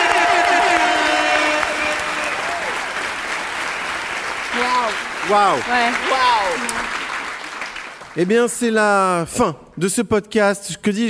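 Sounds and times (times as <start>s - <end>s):
crowd standing ovation applause: 0.0s - 8.6s
speech: 5.3s - 7.0s, 8.2s - 11.0s.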